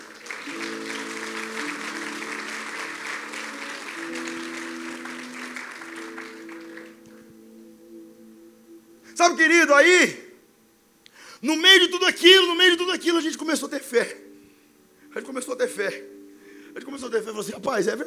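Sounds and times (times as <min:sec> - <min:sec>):
audience applause: 0:00.0 - 0:07.3
speech: 0:09.2 - 0:10.2, 0:11.4 - 0:14.3, 0:15.2 - 0:16.1, 0:16.8 - 0:18.0.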